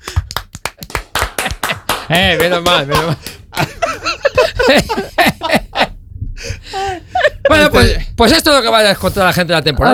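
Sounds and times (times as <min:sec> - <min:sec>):
applause: 0:00.0 - 0:03.4
speech: 0:02.1 - 0:03.7, 0:04.6 - 0:05.6, 0:06.4 - 0:09.9
laughter: 0:02.8 - 0:06.0, 0:06.7 - 0:07.8.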